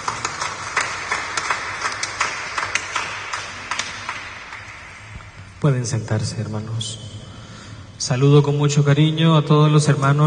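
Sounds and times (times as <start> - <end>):
audience clapping: 0.0 - 5.6
speech: 5.6 - 7.1, 8.0 - 10.2.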